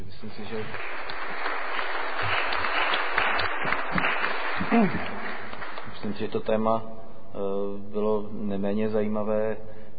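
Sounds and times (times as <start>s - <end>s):
speech: 0.2s - 1.1s, 4.7s - 5.2s, 6.0s - 9.9s
audience applause: 0.4s - 6.3s.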